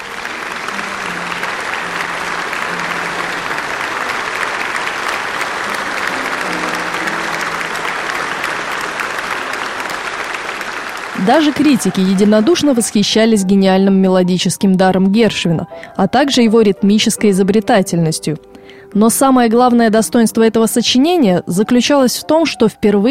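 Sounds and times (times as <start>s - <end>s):
concert hall audience ovation: 0.0s - 13.1s
speech: 11.3s - 23.0s.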